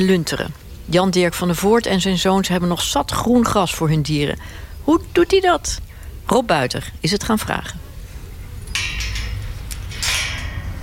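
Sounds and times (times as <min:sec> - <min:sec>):
speech: 0:00.0 - 0:07.8
farm gate closing: 0:08.5 - 0:10.8.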